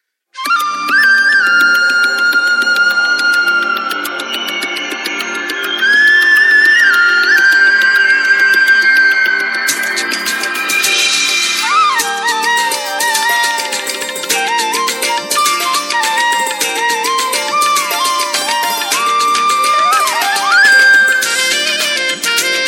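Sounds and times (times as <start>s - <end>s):
Samsung GT-B3313 Corby Mate phone ringtone: 1.5s - 22.6s.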